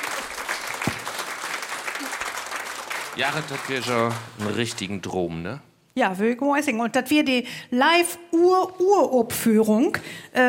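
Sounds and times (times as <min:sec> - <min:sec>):
audience applause: 0:00.0 - 0:04.9
speech: 0:03.2 - 0:10.4.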